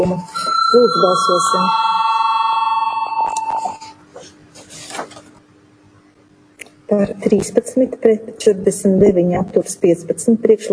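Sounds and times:
speech: 0:00.0 - 0:01.9, 0:06.9 - 0:10.7
parliament chamber bell ringing before vote: 0:00.0 - 0:04.0
shuffling noises: 0:03.6 - 0:05.4.

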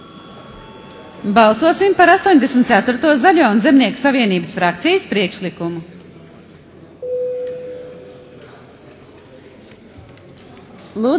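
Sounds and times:
speech: 0:01.2 - 0:06.0, 0:11.0 - 0:11.1
parliamentary voting bell ringing: 0:07.0 - 0:08.4.

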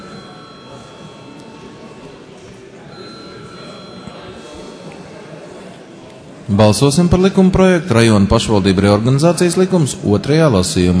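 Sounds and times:
parliament chamber electric bell ringing: 0:00.0 - 0:05.4
low murmur of many voices: 0:00.0 - 0:10.9
speech: 0:06.5 - 0:10.9.

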